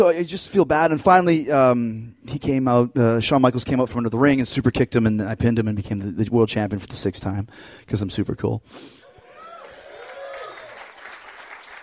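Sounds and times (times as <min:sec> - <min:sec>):
speech: 0:00.0 - 0:09.0
applause: 0:09.2 - 0:11.8.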